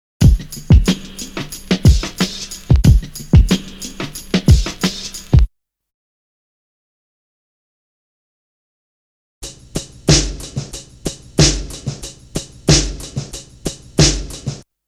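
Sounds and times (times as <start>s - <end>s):
drum loop: 0.2s - 5.5s, 9.4s - 14.6s.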